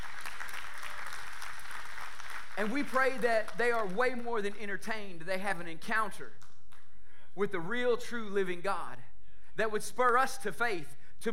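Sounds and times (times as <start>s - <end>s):
audience applauding: 0.0s - 4.5s
speech: 2.6s - 6.4s, 7.4s - 11.3s.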